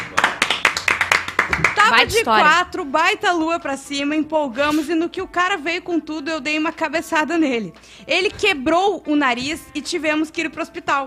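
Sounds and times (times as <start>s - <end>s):
quick steady hand clapping: 0.0s - 2.3s
speech: 1.9s - 11.0s.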